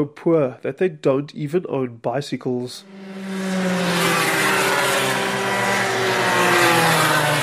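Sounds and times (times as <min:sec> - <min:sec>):
speech: 0:00.0 - 0:03.2
go-kart engines whining at high revs racing around a track: 0:02.8 - 0:07.4.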